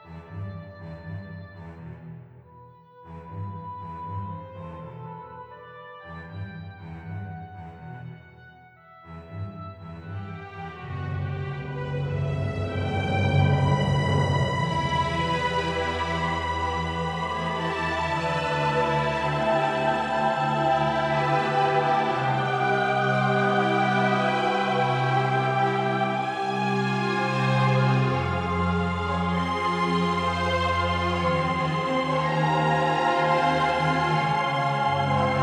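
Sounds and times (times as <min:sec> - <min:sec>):
deep emotional sound: 0:10.1 - 0:35.4.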